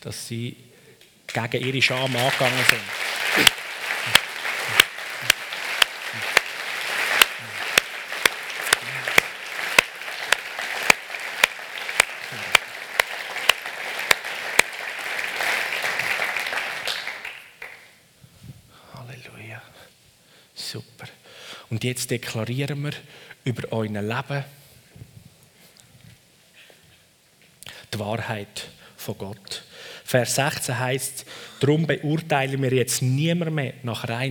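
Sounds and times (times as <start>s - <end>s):
speech: 0.0s - 0.7s, 1.3s - 4.2s, 21.8s - 24.6s, 28.0s - 34.2s
audience applause: 1.6s - 17.9s
quiet murmuring voices: 2.0s - 14.8s.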